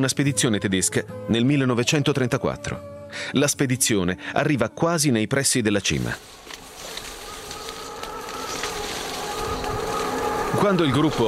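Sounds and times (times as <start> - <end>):
speech: 0.0 - 6.6, 10.5 - 11.2
terrible gusts of mountain wind: 6.2 - 11.2.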